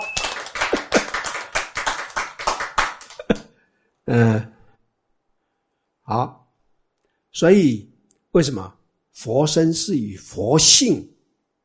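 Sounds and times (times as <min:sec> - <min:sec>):
clapping: 0:00.0 - 0:03.4
speech: 0:04.1 - 0:04.5, 0:06.1 - 0:06.4, 0:07.4 - 0:11.2.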